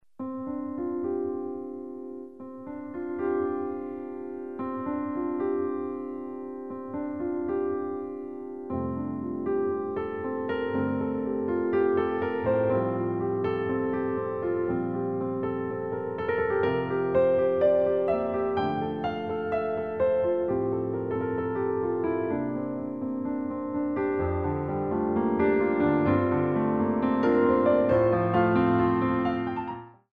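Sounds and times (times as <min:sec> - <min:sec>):
piano: 0:00.0 - 0:30.1.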